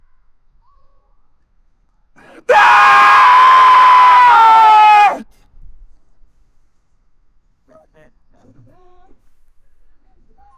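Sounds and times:
person screaming: 2.4 - 5.2.

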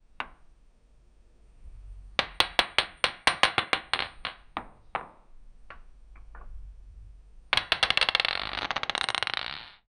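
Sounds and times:
marble hitting stone: 0.2 - 0.5, 2.2 - 6.6, 7.5 - 9.8.

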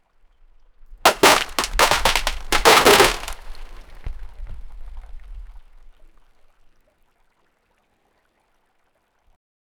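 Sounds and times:
fishing rod float falling: 1.1 - 3.8.

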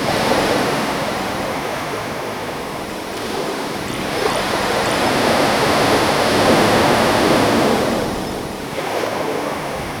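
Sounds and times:
waves: 0.0 - 9.9.

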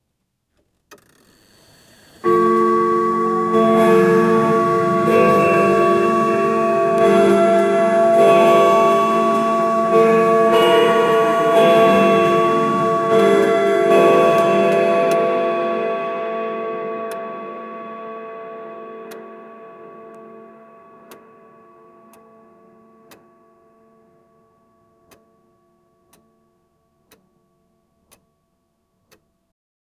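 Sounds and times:
heavenly clock ticking: 2.2 - 16.0, 20.1 - 24.2, 25.0 - 25.5.

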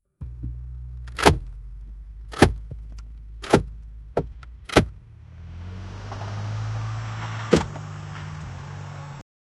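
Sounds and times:
car collisions: 0.2 - 9.2
car tyres skidding: 3.4 - 9.2.

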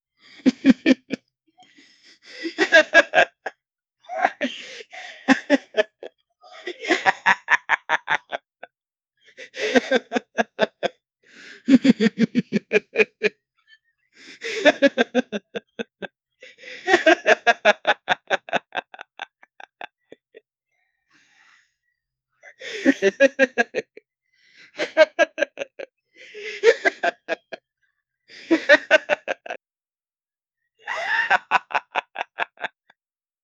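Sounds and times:
22-year-old man laughing: 0.4 - 1.2, 2.6 - 3.5, 4.1 - 8.7, 9.6 - 10.9, 11.7 - 13.4, 14.5 - 16.1, 16.8 - 20.4, 24.8 - 27.6, 28.4 - 29.6, 30.8 - 33.0.

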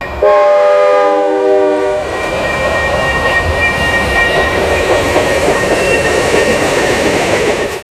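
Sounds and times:
train: 0.0 - 7.9.

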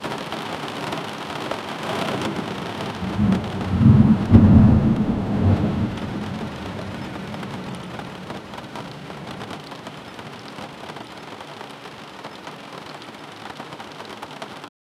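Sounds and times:
heavy rain on a window: 0.0 - 14.7.

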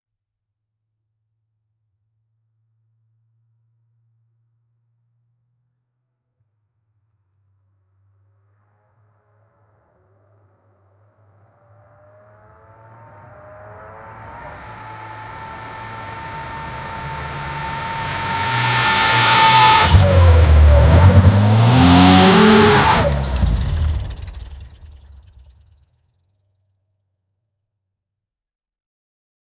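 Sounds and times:
sports car: 11.8 - 25.8.

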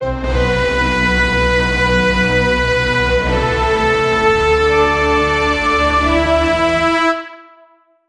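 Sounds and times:
dramatic score: 0.0 - 7.6.

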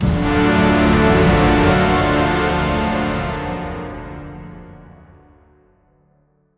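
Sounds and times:
orchestral hit: 0.0 - 4.6.

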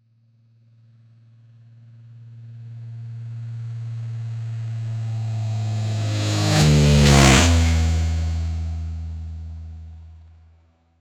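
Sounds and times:
cross plane V8 car engine: 4.3 - 10.1.

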